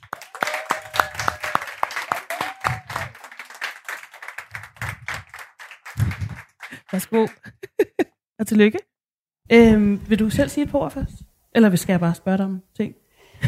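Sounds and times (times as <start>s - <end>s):
audience applause as an art association receives an award: 0.0s - 7.6s
laughter: 5.9s - 8.1s
speech: 6.9s - 7.5s, 8.4s - 8.9s, 9.5s - 13.0s.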